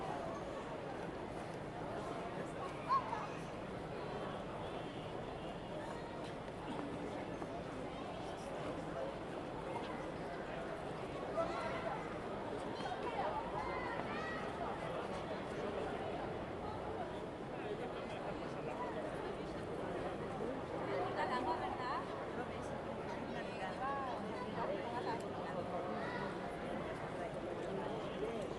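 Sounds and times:
crowd chattering in a tourist town main square: 0.0 - 28.5.

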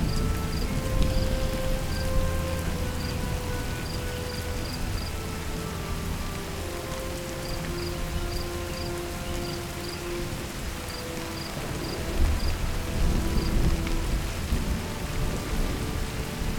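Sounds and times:
storm ambience: 0.0 - 16.5.

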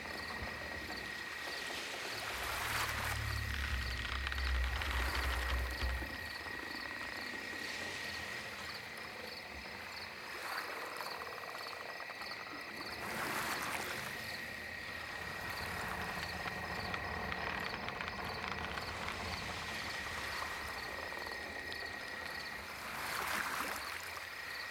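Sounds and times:
lakeside dock night ambience: 0.0 - 24.7.

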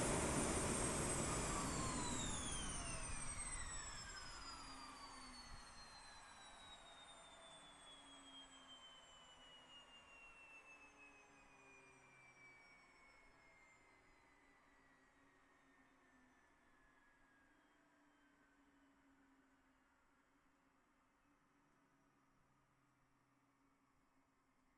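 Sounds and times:
Beechcraft King Air 350 left engine idling low to high rpm: 0.0 - 3.5
Beechcraft King Air 350 left engine starting: 0.0 - 5.1.

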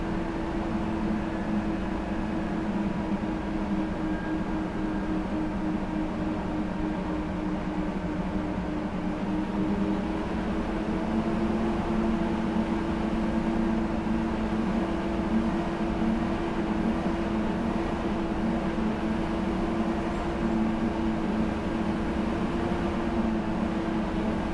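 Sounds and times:
BRDM-2 engine starting, driving fast, stopping and switching off, recorded onboard: 0.0 - 24.5.

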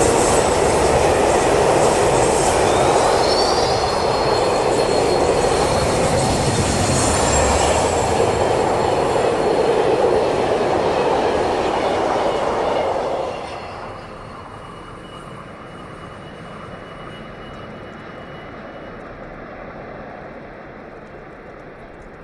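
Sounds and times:
express train squeaking with long tails: 0.0 - 19.6.

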